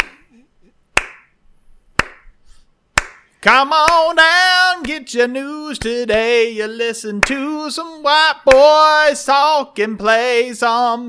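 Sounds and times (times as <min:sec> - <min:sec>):
sharp hand claps: 0:00.0 - 0:00.2, 0:01.0 - 0:01.4, 0:02.0 - 0:02.4, 0:03.0 - 0:04.1, 0:07.2 - 0:07.4
speech: 0:03.4 - 0:11.0.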